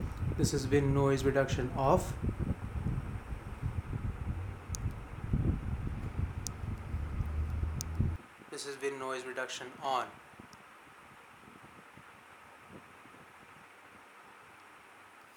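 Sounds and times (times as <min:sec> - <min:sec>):
wind noise: 0:00.0 - 0:08.2.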